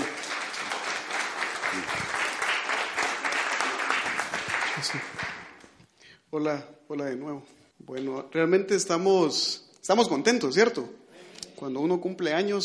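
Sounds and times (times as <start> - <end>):
audience applause: 0.0 - 5.6
speech: 4.8 - 5.4, 6.3 - 11.0, 11.6 - 12.6.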